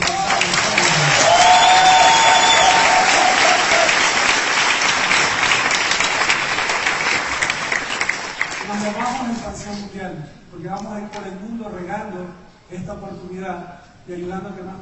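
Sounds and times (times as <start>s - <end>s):
whistles and cheers: 0.0s - 4.2s
crowd applause: 0.0s - 8.8s
speech: 10.5s - 14.7s.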